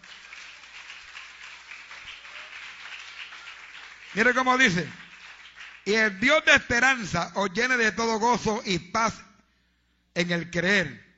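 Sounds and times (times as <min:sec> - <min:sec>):
audience applauding: 0:00.0 - 0:06.0
speech: 0:04.1 - 0:05.0, 0:05.8 - 0:09.3, 0:10.2 - 0:11.0.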